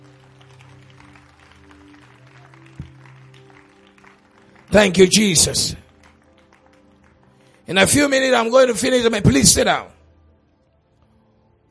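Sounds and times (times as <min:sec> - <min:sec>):
audience clapping hands: 0:00.0 - 0:08.5
speech: 0:04.7 - 0:05.8, 0:07.7 - 0:09.9.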